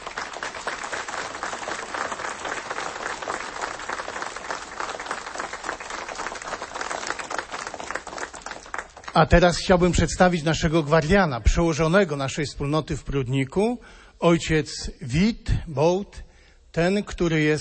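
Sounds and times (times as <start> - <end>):
crowd applauding: 0.0 - 9.8
speech: 9.2 - 17.5.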